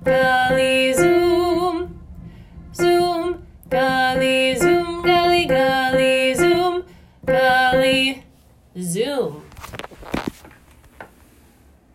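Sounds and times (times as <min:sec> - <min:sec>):
alto voice singing: 0:00.0 - 0:02.0, 0:02.8 - 0:08.2.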